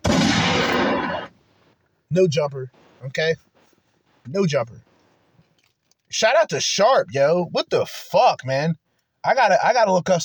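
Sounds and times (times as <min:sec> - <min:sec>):
gunshots: 0:00.0 - 0:01.4
speech: 0:02.1 - 0:03.5, 0:04.2 - 0:04.9, 0:06.1 - 0:10.2.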